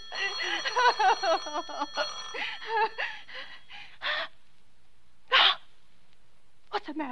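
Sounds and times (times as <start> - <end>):
bell ringing: 0.0 - 3.8.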